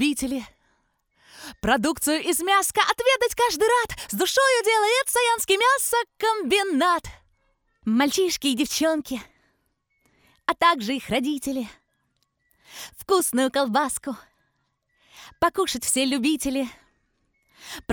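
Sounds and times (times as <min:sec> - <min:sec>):
vocals: 0:00.0 - 0:00.6, 0:01.3 - 0:07.2, 0:07.9 - 0:09.4, 0:10.5 - 0:11.8, 0:12.8 - 0:14.3, 0:15.2 - 0:16.8, 0:17.7 - 0:17.9.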